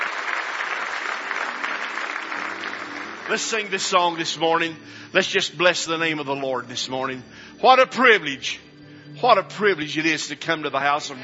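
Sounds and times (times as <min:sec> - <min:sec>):
church congregation clapping hands in praise during a morning worship service: 0:00.0 - 0:04.8
speech: 0:03.3 - 0:08.6, 0:09.2 - 0:11.2.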